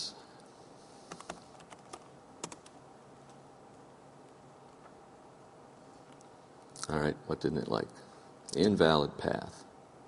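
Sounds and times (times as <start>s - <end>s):
typing on a computer keyboard: 1.1s - 2.8s
speech: 6.9s - 9.7s.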